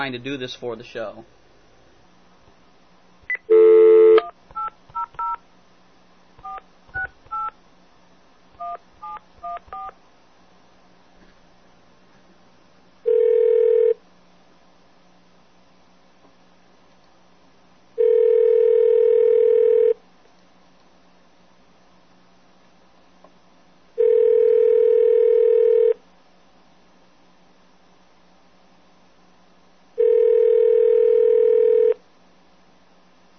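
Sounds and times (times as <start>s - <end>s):
speech: 0.0s - 1.4s
telephone ringing tones: 3.4s - 5.4s, 13.1s - 14.0s, 18.0s - 20.0s, 24.0s - 26.0s, 30.0s - 32.0s.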